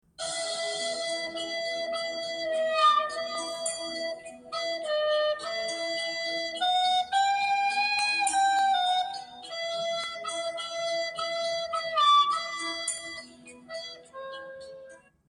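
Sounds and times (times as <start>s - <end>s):
failed flute notes: 0.2s - 15.0s.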